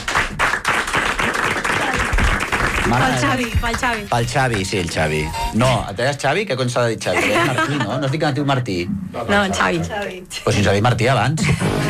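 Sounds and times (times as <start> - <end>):
audience applause: 0.0 - 5.1
speech: 2.9 - 11.8
laughter: 7.0 - 10.2.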